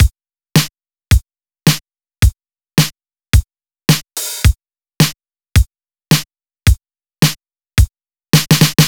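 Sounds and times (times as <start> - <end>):
swing drum loop: 0.0 - 8.8.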